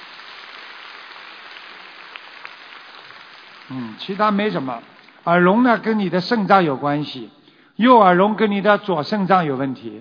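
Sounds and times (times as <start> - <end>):
applause: 0.0 - 5.2
speech: 3.7 - 9.9.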